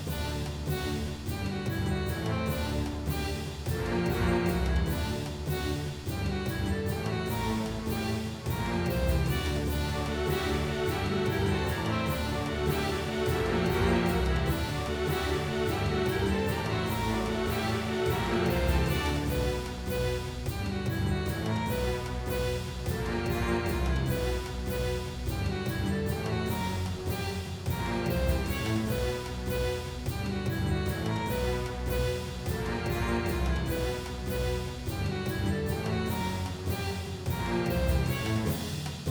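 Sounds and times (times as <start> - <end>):
boss battle game music: 0.1 - 38.9.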